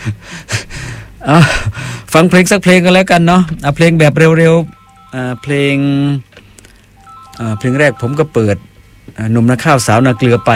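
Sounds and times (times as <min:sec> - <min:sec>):
speech: 0:00.0 - 0:00.6, 0:01.2 - 0:06.3, 0:07.4 - 0:10.5
phone cut-off tones ending a radio call-in: 0:04.6 - 0:06.2, 0:07.0 - 0:08.8, 0:09.6 - 0:10.5.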